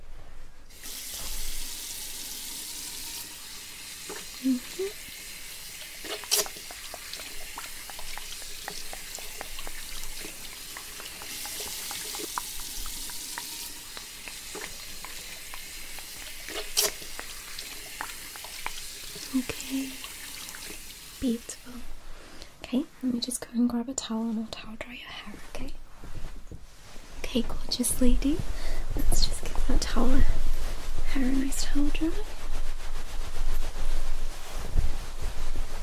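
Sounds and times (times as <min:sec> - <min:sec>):
running water rinsing conditioner out of a client's hair at a hair salon: 0:00.7 - 0:22.0, 0:29.1 - 0:35.8
speech: 0:04.4 - 0:05.0, 0:23.6 - 0:25.5, 0:27.4 - 0:28.6, 0:30.0 - 0:30.4, 0:31.2 - 0:32.4.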